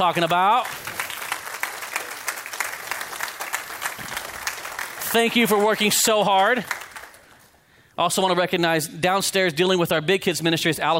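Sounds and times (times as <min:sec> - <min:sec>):
speech: 0:00.0 - 0:00.8, 0:05.1 - 0:06.8, 0:08.0 - 0:10.9
audience applauding: 0:00.0 - 0:07.6.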